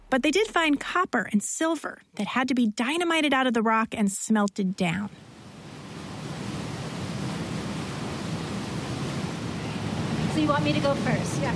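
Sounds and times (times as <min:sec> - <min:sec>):
speech: 0:00.1 - 0:05.2, 0:10.4 - 0:11.5
rushing waterfall: 0:05.4 - 0:11.5.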